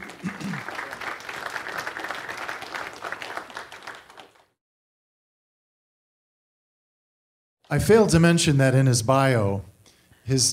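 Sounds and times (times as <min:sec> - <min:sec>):
audience applause: 0:00.0 - 0:04.6
speech: 0:07.7 - 0:09.7, 0:10.3 - 0:10.5.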